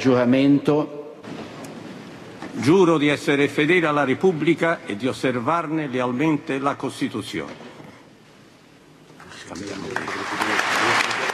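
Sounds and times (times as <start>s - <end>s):
speech: 0.0s - 1.0s, 2.6s - 7.6s
parliament applause after swearing-in oath: 9.2s - 11.3s.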